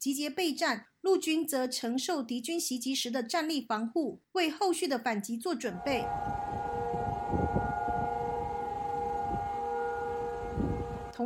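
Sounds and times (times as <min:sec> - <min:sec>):
speech: 0:00.0 - 0:06.7
air raid siren: 0:05.7 - 0:11.2.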